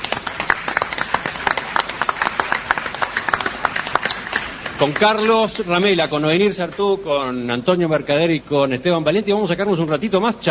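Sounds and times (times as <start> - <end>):
audience applause: 0.0 - 7.0
speech: 4.8 - 10.4.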